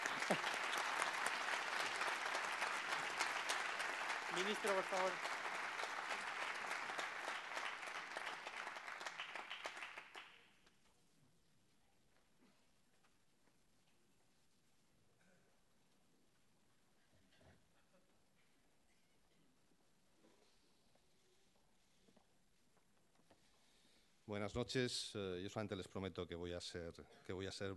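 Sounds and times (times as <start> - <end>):
audience applause: 0.0 - 10.4
speech: 4.4 - 5.3, 24.4 - 27.7.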